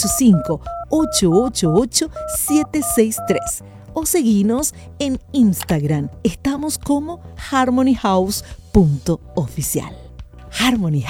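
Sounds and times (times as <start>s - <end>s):
telephone keypad dialing tones: 0.0s - 3.6s
speech: 0.0s - 11.0s.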